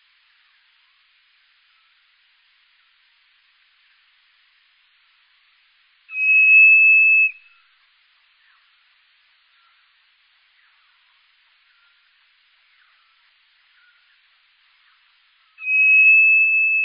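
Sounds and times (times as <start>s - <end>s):
common blackbird song slowed down: 6.1s - 7.6s, 10.4s - 16.8s.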